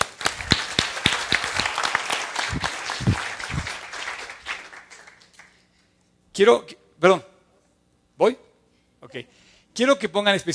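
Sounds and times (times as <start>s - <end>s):
audience applause: 0.0s - 5.6s
speech: 6.4s - 7.3s, 8.2s - 8.4s, 9.0s - 10.5s.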